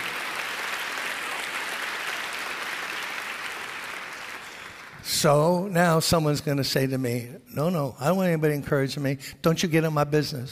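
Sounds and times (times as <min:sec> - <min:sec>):
audience clapping hands: 0:00.0 - 0:05.5
speech: 0:05.0 - 0:10.5.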